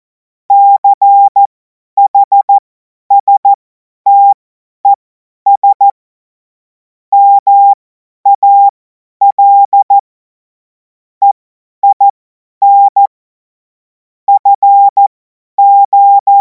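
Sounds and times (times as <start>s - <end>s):
CW Morse code beeps: 0.5s - 1.5s, 2.1s - 3.5s, 4.1s - 4.4s, 5.5s - 6.0s, 7.2s - 10.0s, 11.2s - 13.1s, 14.3s - 16.3s.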